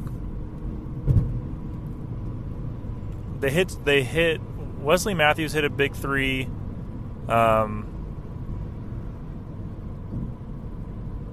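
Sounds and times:
car road rumble driving into fog: 0.0 - 11.3
speech: 3.4 - 6.6, 7.2 - 7.9.

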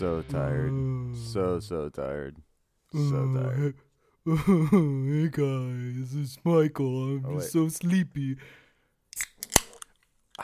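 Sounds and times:
speech: 0.0 - 8.6
laughter: 4.3 - 5.2
soda can snapped open: 9.2 - 9.9.

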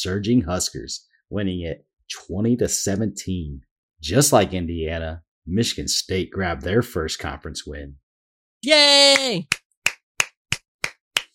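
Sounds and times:
speech: 0.0 - 8.0, 8.6 - 9.6
applause: 8.7 - 11.3.

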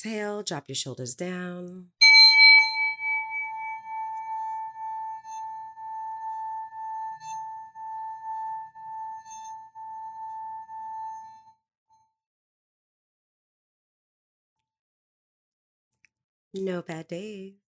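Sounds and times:
speech: 0.0 - 2.0, 16.5 - 17.6
singing bowl being rung: 2.0 - 11.4.

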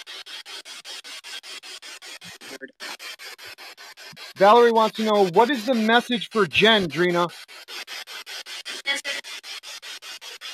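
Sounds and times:
speech: 2.2 - 2.9, 4.4 - 7.4
garbled fragments: 4.4 - 7.3
radio static rapidly sweeping through stations: 4.4 - 7.3.

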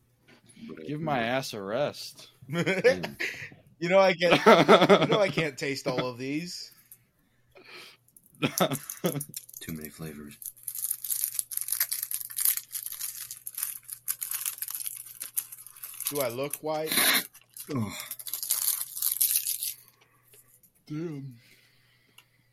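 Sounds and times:
speech: 0.9 - 6.7, 8.4 - 10.5, 16.1 - 18.1, 20.9 - 21.4
laughter: 2.5 - 3.6, 4.3 - 6.3, 8.4 - 9.3
crunchy snacks being chewed: 8.5 - 16.6, 17.2 - 20.0
groan: 17.7 - 18.1.

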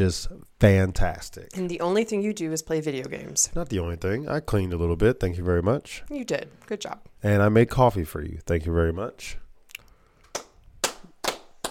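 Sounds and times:
speech: 0.0 - 9.4
hand clapping: 10.2 - 11.6.

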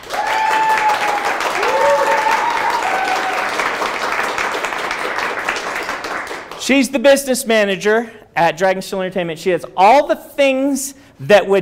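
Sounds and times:
whoops and cheers: 0.0 - 3.8
room full of people applauding: 0.0 - 6.6
speech: 6.7 - 11.6.

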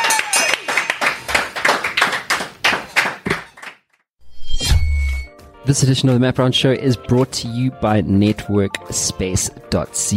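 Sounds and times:
round of applause from a small group: 0.0 - 4.0
speech: 5.7 - 10.1.

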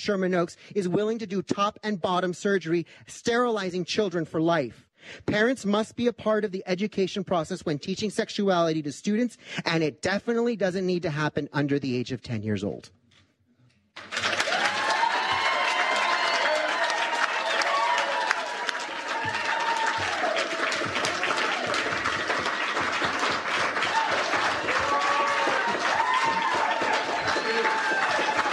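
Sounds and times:
speech: 0.0 - 13.0
crowd shouting and cheering: 14.0 - 28.5
large audience applause: 14.0 - 28.5.

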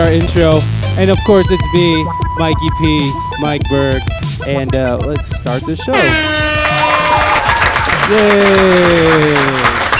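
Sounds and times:
speech: 0.2 - 6.5, 8.1 - 9.7
crowd applause and cheering: 6.0 - 9.9.

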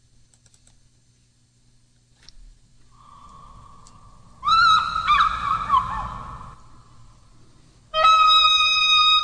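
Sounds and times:
eagle call: 3.0 - 7.0, 7.9 - 9.2
oboe playing: 8.0 - 9.2.

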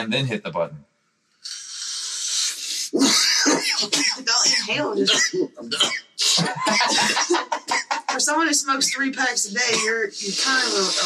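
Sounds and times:
speech: 0.0 - 1.6, 3.8 - 11.0
stifled internal sneeze: 2.5 - 7.8
laughter: 6.3 - 11.0.

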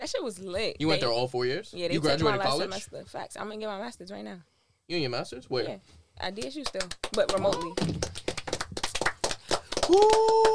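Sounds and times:
speech: 0.1 - 8.2, 9.9 - 10.5
people clapping hands: 6.3 - 10.5.

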